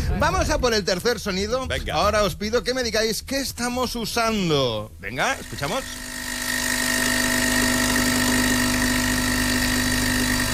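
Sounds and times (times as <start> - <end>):
speech: 0.1 - 6.1
capsule coffee machine brewing with pump drone: 5.2 - 10.5.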